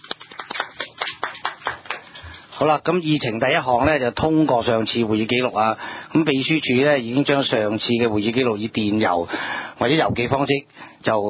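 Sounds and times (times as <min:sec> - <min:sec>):
meeting attendees clapping to welcome guests at a committee meeting: 0:00.0 - 0:02.4
speech: 0:02.6 - 0:11.2.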